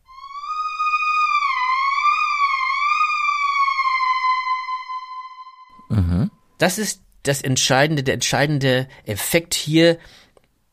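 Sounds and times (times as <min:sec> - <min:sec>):
pitch-bending tones sliding into each other: 0:00.0 - 0:06.5
speech: 0:06.6 - 0:10.7.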